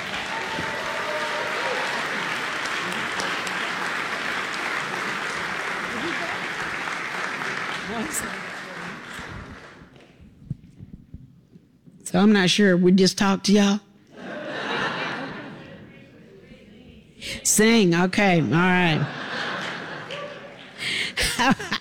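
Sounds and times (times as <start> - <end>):
audience applause welcoming speakers at a book event: 0.0 - 10.2, 19.2 - 21.4
laughter: 1.5 - 9.8, 14.1 - 16.4, 18.8 - 21.7
speech: 8.0 - 8.4, 12.1 - 13.9, 17.6 - 19.2, 21.4 - 21.7.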